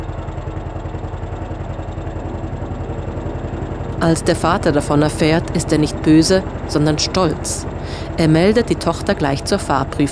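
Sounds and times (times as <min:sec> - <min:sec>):
old car engine idling with knocking rattle: 0:00.0 - 0:10.1
speech: 0:04.0 - 0:10.1.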